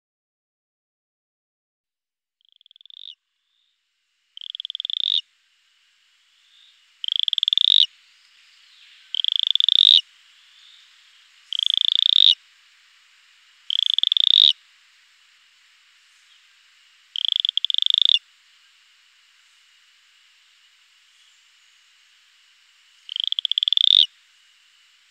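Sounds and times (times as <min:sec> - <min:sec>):
Cayenne stubfoot toad calling: 0:02.4 - 0:03.7, 0:04.4 - 0:05.3, 0:06.3 - 0:12.6, 0:13.6 - 0:14.7, 0:16.2 - 0:18.3, 0:22.8 - 0:24.2
soft background hiss: 0:02.6 - 0:25.0.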